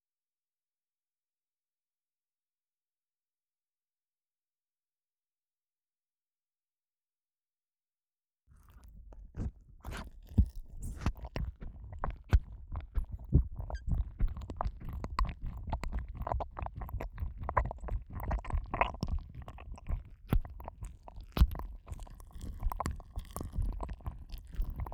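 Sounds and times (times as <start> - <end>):
left and right ear licking for ASMR: 8.6 - 24.9.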